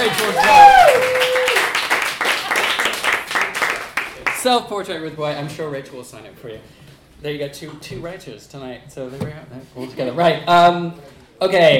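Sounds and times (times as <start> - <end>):
round of applause: 0.0 - 4.5
speech: 4.4 - 11.7.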